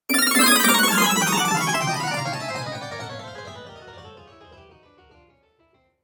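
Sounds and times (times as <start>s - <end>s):
video game fail loser sound: 0.1s - 4.9s.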